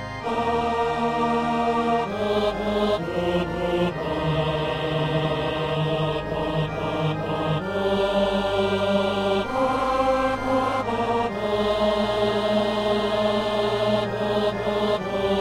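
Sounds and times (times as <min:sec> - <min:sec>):
tenor singing: 0:00.2 - 0:15.4.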